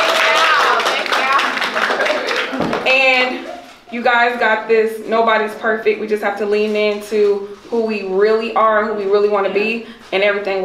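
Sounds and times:
audience applause at a Mother's Day event: 0:00.0 - 0:02.8
speech: 0:03.9 - 0:10.6.

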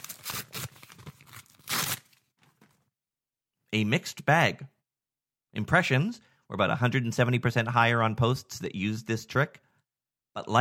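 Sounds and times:
paper envelope being torn open: 0:00.0 - 0:02.3
paper envelope crinkling: 0:00.0 - 0:02.8
speech: 0:03.7 - 0:04.8, 0:05.5 - 0:09.6, 0:10.4 - 0:10.6.

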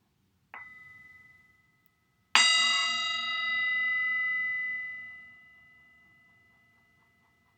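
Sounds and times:
singing bowl ringing during a guided meditation: 0:00.6 - 0:07.5.

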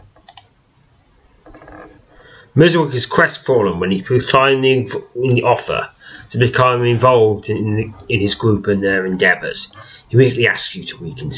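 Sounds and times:
computer mouse clicks: 0:00.0 - 0:00.5
speech: 0:02.5 - 0:11.3.

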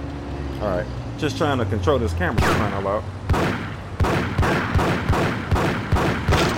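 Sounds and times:
speech: 0:00.6 - 0:03.6
video game gunfire: 0:03.3 - 0:06.5.

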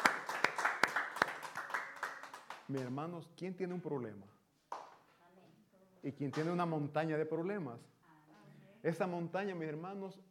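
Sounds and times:
audience applauding: 0:00.0 - 0:02.8
speech: 0:02.7 - 0:04.4, 0:06.0 - 0:07.9, 0:08.8 - 0:10.2.

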